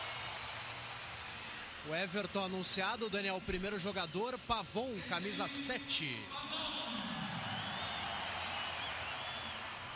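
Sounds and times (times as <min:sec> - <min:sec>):
crowd cheering: 0:00.0 - 0:01.8, 0:06.4 - 0:09.9
stadium crowd applauding: 0:00.0 - 0:02.7, 0:06.7 - 0:09.9
speech: 0:01.8 - 0:06.7
faint whistles: 0:07.4 - 0:09.9.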